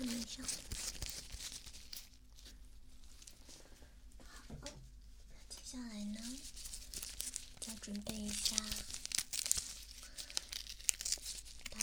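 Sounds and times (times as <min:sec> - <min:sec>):
adhesive tape for after an injection crinkling and tearing: 0:00.0 - 0:02.5, 0:05.9 - 0:11.8
speech: 0:07.9 - 0:08.9.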